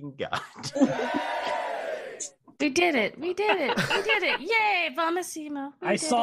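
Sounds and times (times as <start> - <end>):
speech: 0.0 - 1.3, 2.2 - 6.2
laughter: 0.5 - 2.2, 3.4 - 4.6
inserted applause and cheering sound effect: 0.7 - 2.3.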